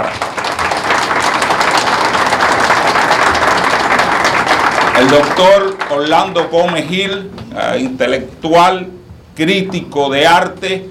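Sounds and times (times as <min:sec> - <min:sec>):
audience applause: 0:00.0 - 0:06.9
speech: 0:05.0 - 0:10.8.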